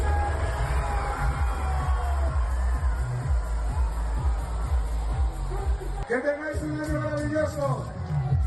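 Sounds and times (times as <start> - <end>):
crowd clapping: 0.0 - 8.3
speech: 6.1 - 8.2.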